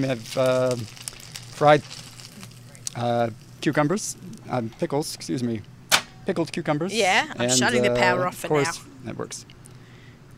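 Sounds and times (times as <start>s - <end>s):
speech: 0.0s - 1.0s, 1.6s - 2.0s, 2.9s - 5.7s, 6.3s - 9.6s
pickled green tomatoes frying in very hot oil: 0.0s - 3.8s.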